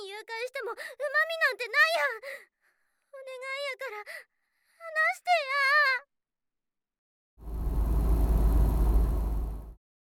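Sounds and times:
speech: 0.2s - 6.1s
small motor whirring from a chair: 7.4s - 9.8s.

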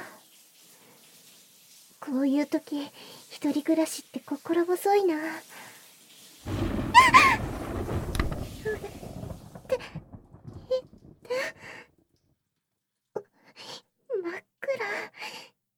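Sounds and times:
speech: 2.0s - 5.7s
thunder from an approaching storm: 6.5s - 11.9s.

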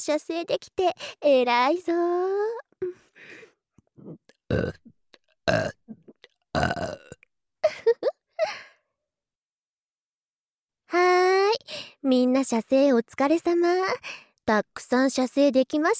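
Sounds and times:
speech: 0.0s - 3.4s, 4.0s - 4.9s, 5.5s - 6.0s, 6.6s - 7.2s, 10.9s - 15.9s
burping: 4.0s - 4.9s, 5.5s - 7.2s.

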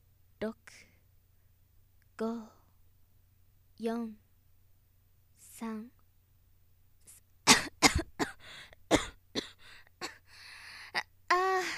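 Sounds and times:
speech: 0.4s - 0.9s, 2.2s - 2.6s, 3.8s - 4.2s, 5.6s - 6.0s
person coughing after choking: 7.5s - 10.2s.

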